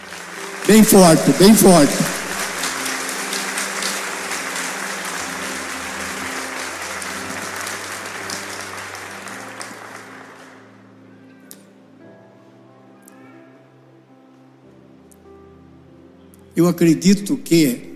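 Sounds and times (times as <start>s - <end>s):
audience applauding loudly: 0.0s - 11.0s
speech: 0.7s - 2.1s, 16.6s - 17.9s.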